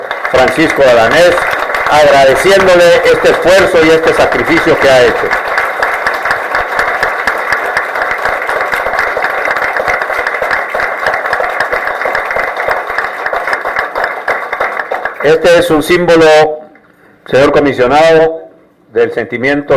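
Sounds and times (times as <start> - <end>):
audience applause: 0.0 - 16.2
speech: 0.4 - 5.4, 15.2 - 16.6, 17.3 - 19.7.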